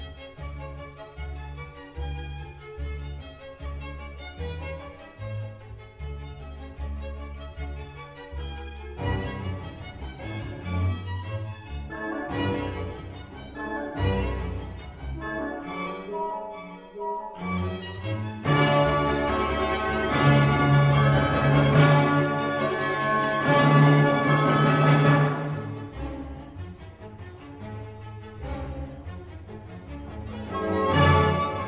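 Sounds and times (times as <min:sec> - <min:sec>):
overture in D major: 0:11.7 - 0:31.6.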